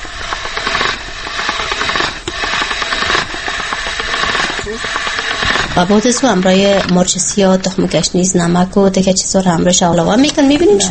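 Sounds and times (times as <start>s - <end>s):
meat grinder mincing meat: 0.0s - 7.3s
speech: 5.8s - 10.8s.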